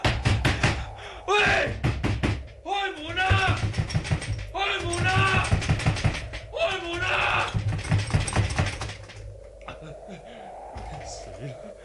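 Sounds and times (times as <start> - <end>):
banging on a locked door: 0.0 - 9.2.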